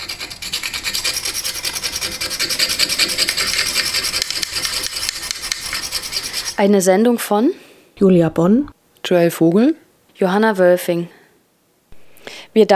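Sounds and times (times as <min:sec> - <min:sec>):
scraping paint off a sign: 0:00.0 - 0:06.8
speech: 0:06.6 - 0:11.2, 0:12.6 - 0:12.7.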